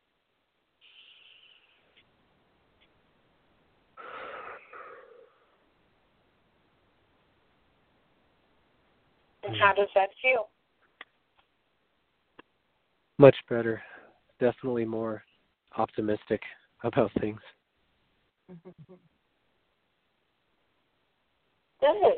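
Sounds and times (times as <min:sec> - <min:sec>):
deep breath: 0:04.0 - 0:05.6, 0:13.8 - 0:14.2
speech: 0:09.5 - 0:10.5, 0:13.2 - 0:17.6, 0:18.5 - 0:19.1, 0:21.8 - 0:22.1.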